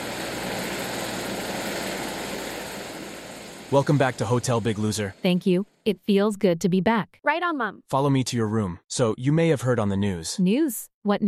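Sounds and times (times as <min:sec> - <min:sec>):
aircraft landing on a hotel roof: 0:00.0 - 0:05.5
speech: 0:03.7 - 0:11.2.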